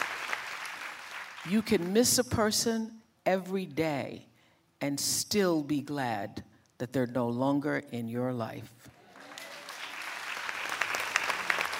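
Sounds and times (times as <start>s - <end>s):
audience clapping: 0.0s - 2.0s, 9.0s - 11.7s
speech: 1.4s - 8.9s.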